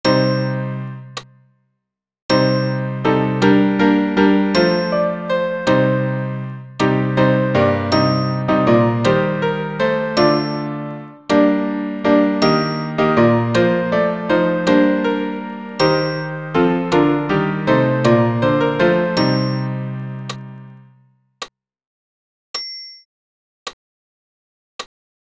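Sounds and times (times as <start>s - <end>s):
piano: 0.0s - 1.4s, 2.3s - 21.1s.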